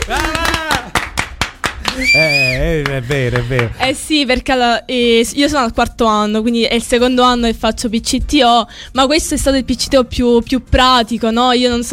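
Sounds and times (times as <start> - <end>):
applause, hands clapping: 0.0 - 3.8
speech: 2.0 - 11.9.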